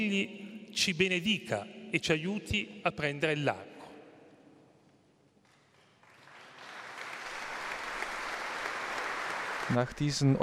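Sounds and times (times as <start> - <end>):
speech: 0.0 - 3.7, 9.7 - 10.4
audience applause: 5.7 - 10.4.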